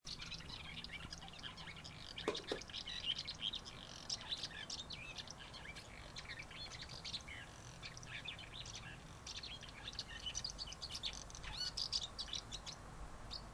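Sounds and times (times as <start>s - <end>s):
swallows calling: 0.1s - 13.4s.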